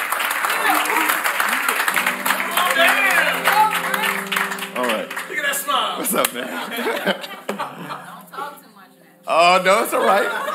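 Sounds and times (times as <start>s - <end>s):
audience clapping: 0.0s - 7.7s
laughter: 0.4s - 2.0s, 6.0s - 8.6s, 9.7s - 10.5s
speech: 6.1s - 7.5s, 9.3s - 10.5s.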